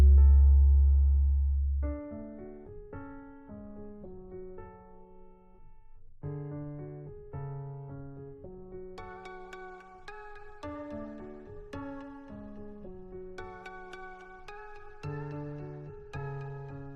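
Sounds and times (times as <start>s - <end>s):
deep bass: 0.0s - 2.3s.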